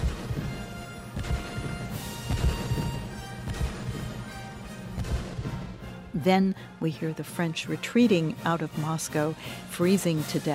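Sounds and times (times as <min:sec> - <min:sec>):
cannon shots: 0:00.0 - 0:05.9
speech: 0:06.2 - 0:10.5.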